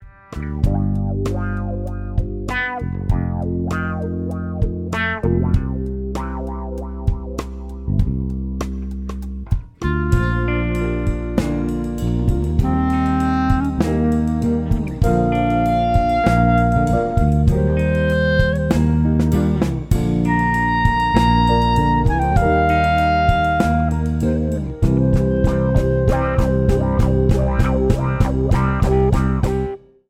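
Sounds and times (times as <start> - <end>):
instrumental music: 0.0 - 30.0.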